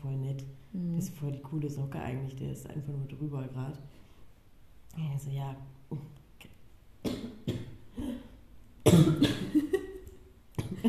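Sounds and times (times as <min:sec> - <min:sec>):
speech: 0:00.0 - 0:04.0, 0:05.0 - 0:06.5
coughing fit: 0:07.0 - 0:09.7.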